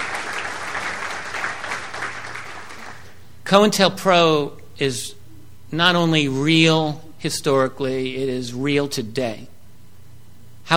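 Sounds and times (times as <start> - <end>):
audience applause: 0.0 - 3.2
speech: 3.5 - 9.5.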